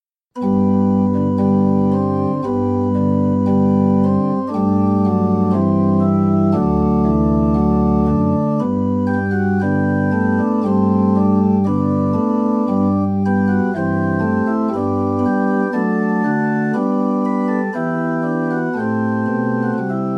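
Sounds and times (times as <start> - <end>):
musical accompaniment: 0.4 - 20.1.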